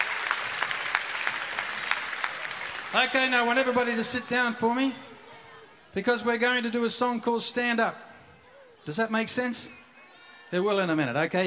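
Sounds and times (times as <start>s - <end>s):
crowd applause: 0.0s - 4.6s
speech: 2.9s - 5.0s, 6.0s - 8.0s, 8.8s - 9.8s, 10.5s - 11.4s.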